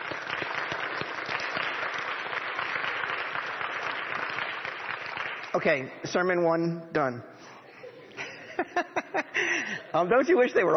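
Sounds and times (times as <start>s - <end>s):
audience applause: 0.0s - 5.8s
speech: 5.6s - 7.5s, 10.0s - 10.7s
laughter: 7.7s - 10.3s.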